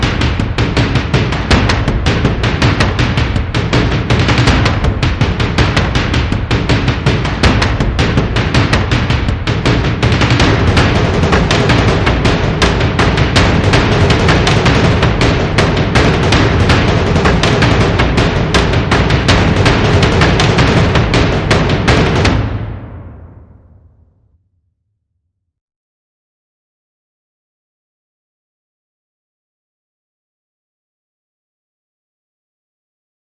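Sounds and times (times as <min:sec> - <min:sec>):
mid drums: 0:00.0 - 0:23.8.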